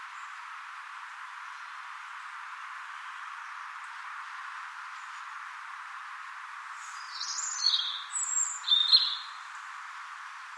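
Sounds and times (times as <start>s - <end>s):
steady background hiss: 0.0s - 10.5s
European robin whistled phrases: 7.0s - 9.4s.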